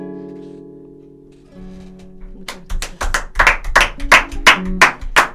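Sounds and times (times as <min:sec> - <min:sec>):
one person clapping hands: 0:02.0 - 0:05.3.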